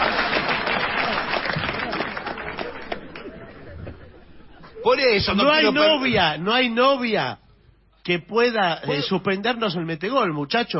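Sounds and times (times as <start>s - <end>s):
audience applause: 0.0s - 3.6s
laughter: 0.9s - 6.1s
speech: 4.8s - 7.4s, 8.0s - 10.7s.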